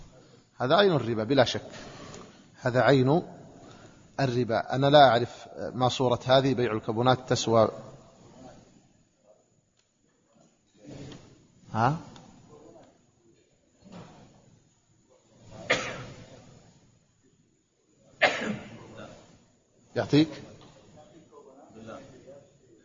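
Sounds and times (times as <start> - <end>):
speech: 0.6 - 2.0, 2.6 - 3.4, 4.2 - 7.9, 11.7 - 12.1, 20.0 - 20.5
sneeze: 15.4 - 16.5, 18.2 - 19.2.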